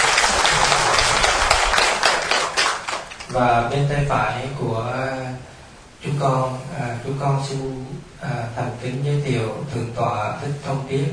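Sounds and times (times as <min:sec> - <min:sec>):
audience applause: 0:00.0 - 0:03.5
speech: 0:03.4 - 0:11.1.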